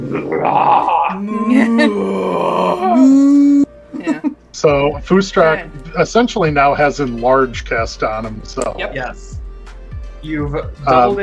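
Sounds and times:
speech: 0.0s - 3.3s, 4.6s - 9.4s, 10.2s - 11.2s
voice imitating a cow with a deepening moo: 0.4s - 3.7s.

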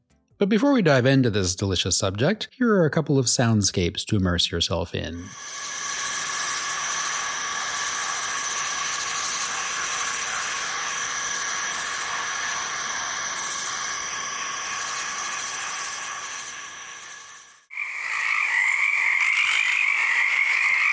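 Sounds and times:
speech: 0.4s - 5.7s
forest insects calling in a dense chorus: 5.2s - 20.9s.

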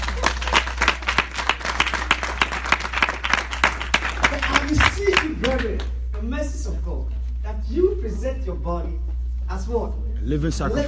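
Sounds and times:
audience clapping: 0.0s - 6.2s
speech: 5.6s - 10.8s.

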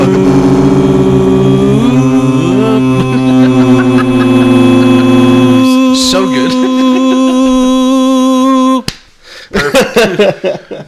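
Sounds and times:
person singing a held tone: 0.0s - 8.9s
person talking: 0.0s - 8.9s
laughter: 2.5s - 8.8s, 9.5s - 10.8s
hand slapping skin: 8.9s - 9.1s.

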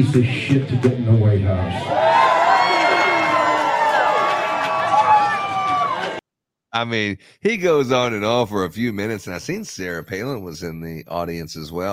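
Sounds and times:
speech: 0.0s - 2.2s, 6.8s - 11.9s
crowd cheering at a trucker rally: 0.0s - 6.2s
shouts and whoops from a trucker rally crowd: 1.7s - 6.2s.

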